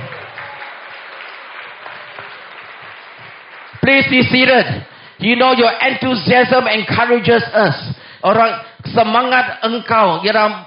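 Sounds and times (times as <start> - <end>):
audience applause: 0.0 - 4.8
speech: 3.9 - 10.6.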